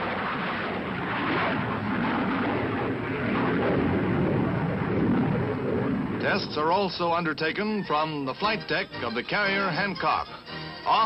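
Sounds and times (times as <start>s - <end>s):
Regulus missile blasting off the cruiser Helena: 0.0s - 7.3s
speech: 6.3s - 11.0s.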